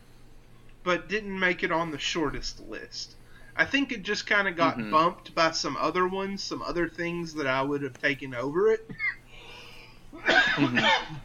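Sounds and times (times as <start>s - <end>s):
speech: 0.8s - 9.2s, 10.2s - 11.2s
person sneezing: 10.2s - 11.2s.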